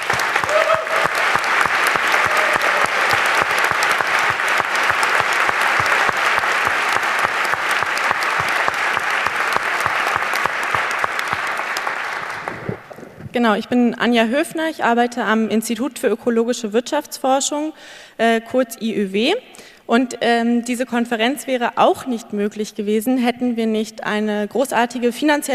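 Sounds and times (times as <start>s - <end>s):
audience applause: 0.0s - 13.3s
speech: 13.4s - 25.5s.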